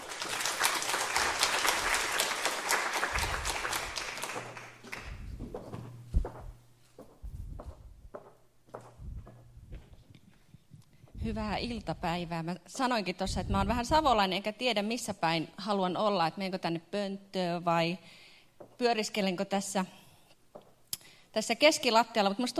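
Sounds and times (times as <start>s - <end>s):
audience applause welcoming the next speaker: 0.0s - 5.2s
footsteps: 3.1s - 11.8s
speech: 11.3s - 18.2s, 18.8s - 20.0s, 21.3s - 22.5s.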